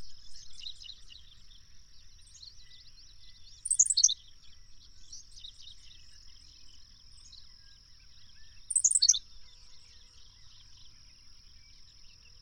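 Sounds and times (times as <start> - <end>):
bird song: 0.0 - 12.3.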